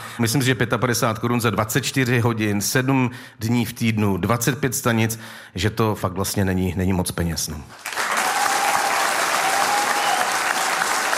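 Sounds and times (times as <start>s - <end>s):
speech: 0.2s - 8.0s
audience applause: 7.8s - 11.1s.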